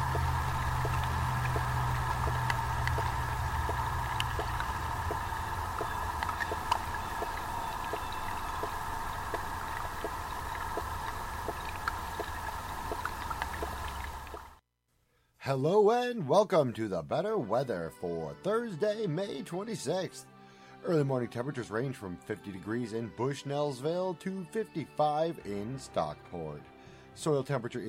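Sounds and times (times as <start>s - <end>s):
continuous hum: 0.0s - 14.5s
faint regular ticks: 0.0s - 14.5s
underwater watery wash inside the Wave Farm pond: 0.0s - 14.6s
speech: 15.5s - 27.8s.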